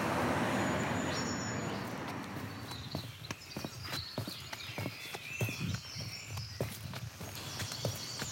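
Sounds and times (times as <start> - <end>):
road traffic in Bath: 0.0 - 5.2
footsteps walking: 1.9 - 8.3.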